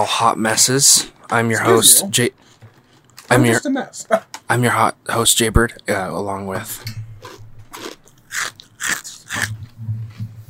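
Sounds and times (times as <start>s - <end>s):
speech: 0.0s - 2.6s, 3.3s - 7.0s
crunchy snack being chewed: 7.2s - 9.8s.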